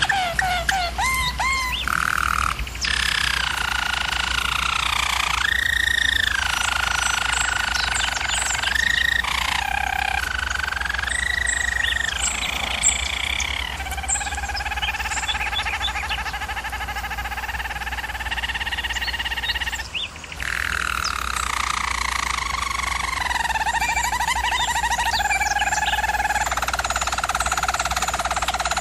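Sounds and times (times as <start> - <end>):
German Roller canary trilling: 0.0 - 28.7
constant low hum: 2.2 - 26.4.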